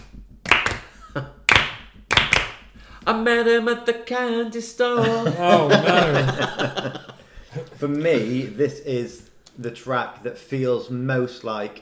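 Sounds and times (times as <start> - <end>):
sharp loud hand claps tapping out a beat: 0.0 - 3.1
speech: 1.2 - 1.4, 3.1 - 7.1, 7.8 - 11.7
laughter: 5.0 - 8.6.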